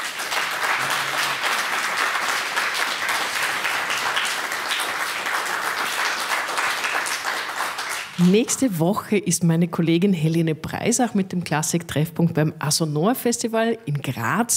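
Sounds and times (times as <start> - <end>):
audience applause: 0.0 - 8.5
speech: 8.2 - 14.5.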